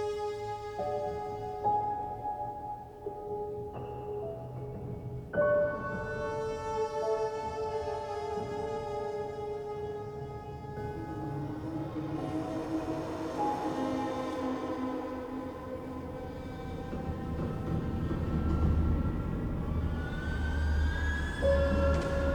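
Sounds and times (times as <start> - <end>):
piano: 0.0 - 22.3
violin: 0.0 - 22.3.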